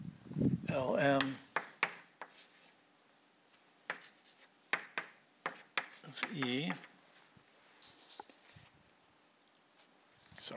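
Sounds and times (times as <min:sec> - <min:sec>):
speech: 0:00.7 - 0:01.4
writing on a board: 0:01.1 - 0:02.8, 0:03.9 - 0:06.9, 0:07.8 - 0:08.5.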